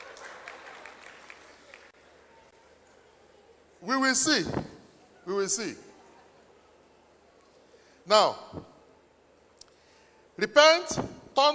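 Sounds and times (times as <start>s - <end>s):
audience clapping: 0.0s - 2.1s
speech: 3.8s - 5.9s, 8.1s - 8.7s, 10.4s - 11.5s.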